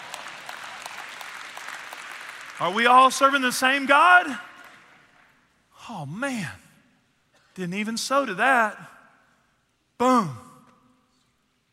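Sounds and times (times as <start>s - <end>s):
audience clapping during a sermon: 0.0s - 5.4s
speech: 2.6s - 4.5s, 5.9s - 6.6s, 7.6s - 8.9s, 10.0s - 10.4s.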